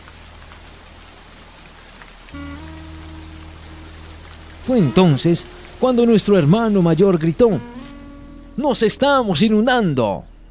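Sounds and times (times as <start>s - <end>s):
heavy rain falling: 0.0s - 9.9s
low sustained droning tone: 2.4s - 8.7s
speech: 4.7s - 7.9s, 8.6s - 10.3s.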